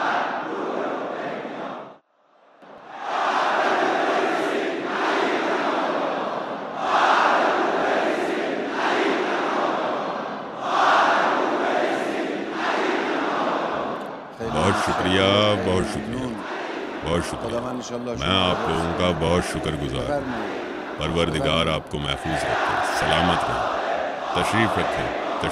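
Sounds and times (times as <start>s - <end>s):
crowd chanting a slogan renewing a pledge to a leader: 0.0s - 2.0s, 2.8s - 25.5s
laughter: 14.4s - 16.4s, 17.0s - 23.7s, 24.4s - 25.5s
speech: 17.2s - 23.7s, 24.4s - 25.5s.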